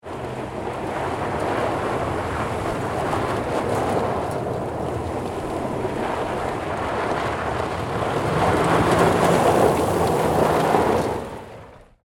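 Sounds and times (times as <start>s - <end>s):
car riding on rough gravel: 0.0s - 12.0s.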